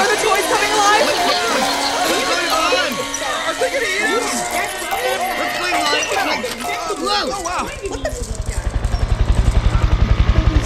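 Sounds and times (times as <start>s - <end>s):
laughter: 0.0s - 10.2s
helicopter approaching: 0.0s - 10.6s.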